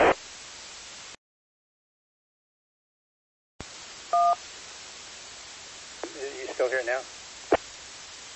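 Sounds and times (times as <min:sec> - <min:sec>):
radio static hiss: 0:00.0 - 0:01.2, 0:03.6 - 0:08.3
radio two-tone roger beep: 0:04.1 - 0:04.4
speech: 0:06.6 - 0:07.2.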